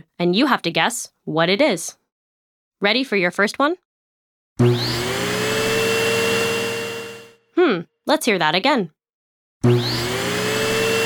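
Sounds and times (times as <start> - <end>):
speech: 0.2 - 2.0, 2.8 - 3.8, 7.7 - 9.0, 9.6 - 10.0
robot vacuum cleaner running with motor whine: 4.6 - 7.4, 9.6 - 11.0.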